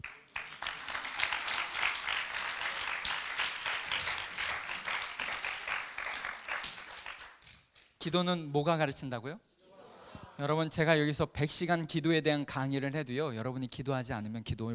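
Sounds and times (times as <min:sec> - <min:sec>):
church audience applauding at a sermon: 0:00.0 - 0:07.7
speech: 0:08.0 - 0:09.5, 0:10.4 - 0:14.7.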